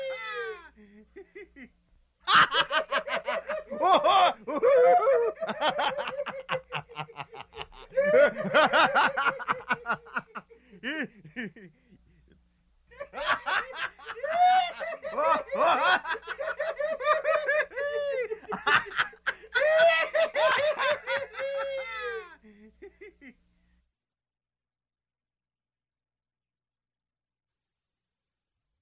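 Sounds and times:
two men laughing hysterically: 0.0 - 1.7, 2.3 - 23.4.

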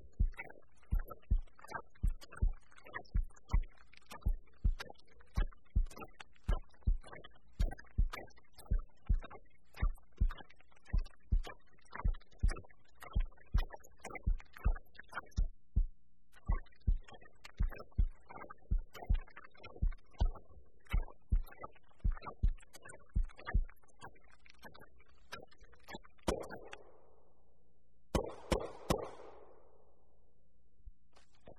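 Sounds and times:
man's heartbeat: 0.0 - 12.6, 13.2 - 23.8, 28.2 - 29.6.

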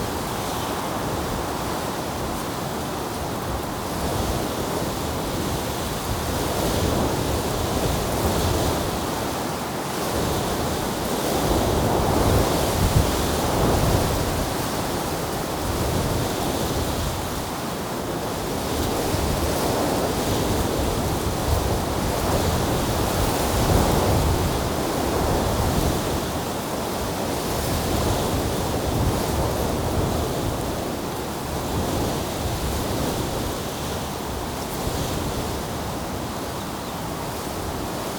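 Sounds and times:
wind at the beach on a windy day: 0.0 - 38.1.

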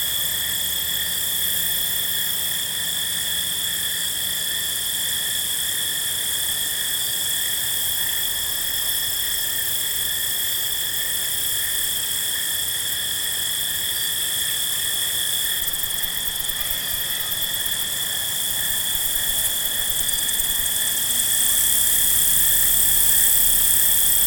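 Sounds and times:
field crickets chirping chorus at night: 0.0 - 24.2.

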